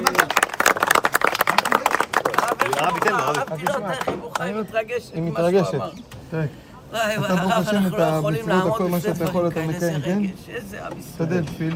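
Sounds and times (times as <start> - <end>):
rhythmic clapping at a gathering with a rabbi: 0.0 - 4.5
speech: 2.8 - 11.7.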